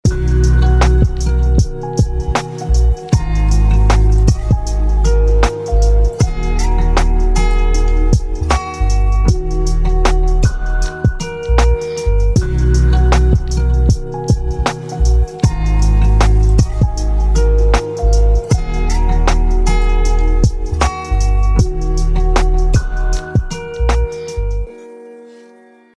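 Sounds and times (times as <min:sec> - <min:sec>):
instrumental music: 0:00.0 - 0:25.9.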